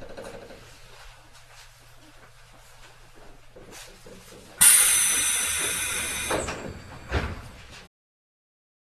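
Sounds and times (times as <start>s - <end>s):
Tokyu 7700 train: 4.6s - 7.9s.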